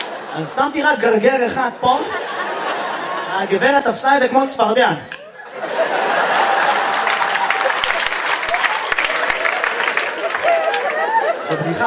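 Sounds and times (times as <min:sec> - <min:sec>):
laughter: 0:00.0 - 0:04.3, 0:05.1 - 0:11.8
speech: 0:00.4 - 0:02.6, 0:03.3 - 0:05.7
audience applauding: 0:05.7 - 0:11.8.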